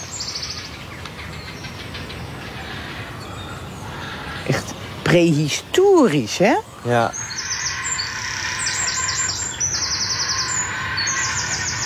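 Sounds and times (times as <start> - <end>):
bird chicks calling at nests: 0.0 - 11.8
speech: 5.1 - 7.2.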